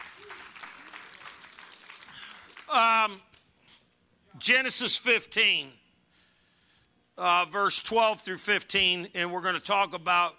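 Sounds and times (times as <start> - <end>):
audience applause: 0.0 - 2.8
speech: 2.7 - 3.3, 4.4 - 5.8, 7.2 - 10.3.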